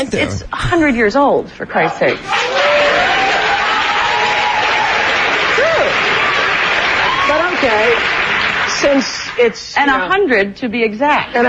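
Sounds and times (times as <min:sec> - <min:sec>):
speech: 0:00.0 - 0:02.7, 0:07.6 - 0:08.2, 0:08.8 - 0:11.4
studio audience applause: 0:02.3 - 0:09.4.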